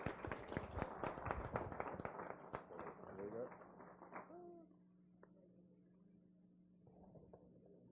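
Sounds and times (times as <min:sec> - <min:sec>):
round of applause: 0:00.0 - 0:04.6.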